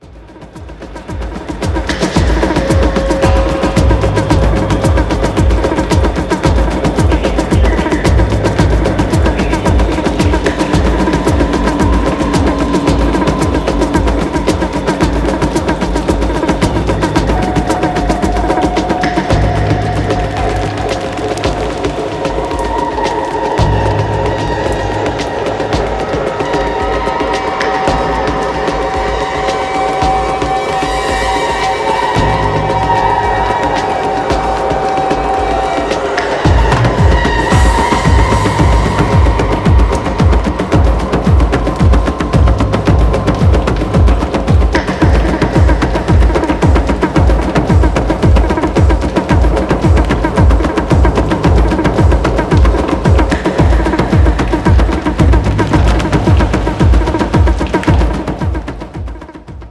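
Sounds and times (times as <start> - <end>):
space drum meditation: 0.0 - 59.6.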